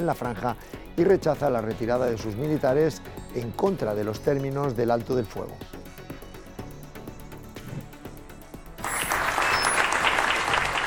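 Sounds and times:
speech: 0.0s - 5.8s
applause: 8.8s - 10.8s.

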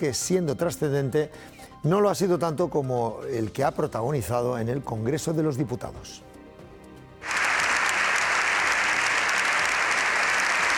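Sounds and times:
speech: 0.0s - 6.3s
long sustained applause from a large audience in the Congreso de los Diputados: 7.2s - 10.7s.

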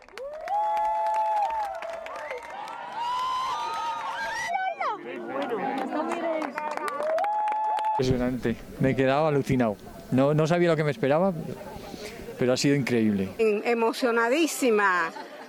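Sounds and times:
large crowd cheering and whooping at the eclipse: 0.0s - 8.0s
crowd applauding the eclipse: 0.0s - 13.3s
speech: 8.0s - 15.3s.

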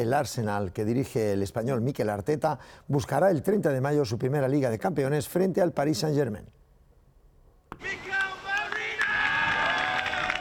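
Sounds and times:
speech: 0.0s - 6.6s, 7.7s - 8.1s
teammates' ovation, applause and cheering: 7.8s - 10.4s.

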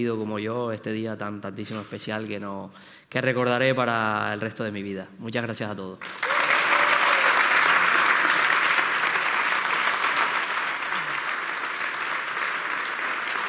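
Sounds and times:
speech: 0.0s - 6.3s
applause from teammates and friends: 6.0s - 13.4s.

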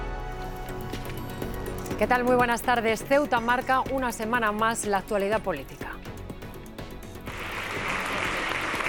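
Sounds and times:
speech: 2.0s - 5.8s
ovation applause from Socialist deputies and senators: 7.3s - 8.8s.

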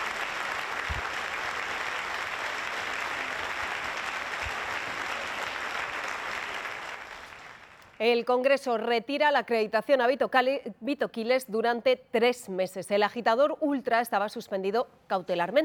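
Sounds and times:
large audience applauding a speech: 0.0s - 8.0s
speech: 8.0s - 15.6s.

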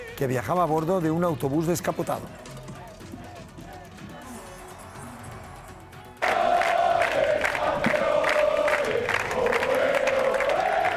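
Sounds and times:
speech: 0.2s - 2.4s
large crowd cheering and chanting for champions in street: 2.6s - 10.9s.

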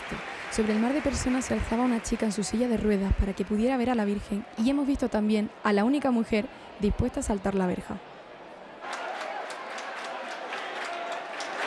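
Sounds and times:
crowd clapping hands rhythmically: 0.0s - 3.8s, 8.8s - 11.6s
speech: 0.1s - 8.1s.

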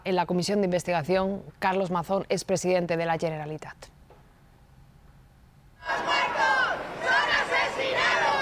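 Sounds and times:
speech: 0.0s - 4.0s
protest crowd shouting: 5.8s - 8.4s.

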